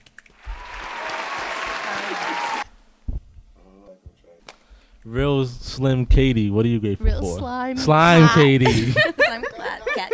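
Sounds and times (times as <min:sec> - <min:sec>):
applause: 0:00.3 - 0:02.7
speech: 0:05.0 - 0:09.5
laughter: 0:08.4 - 0:10.1.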